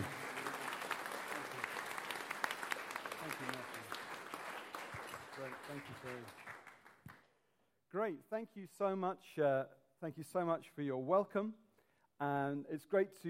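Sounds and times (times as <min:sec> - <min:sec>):
audience applause welcoming a speaker at a morning gathering: 0:00.0 - 0:07.1
speech: 0:05.7 - 0:06.5, 0:07.9 - 0:11.6, 0:12.2 - 0:13.2.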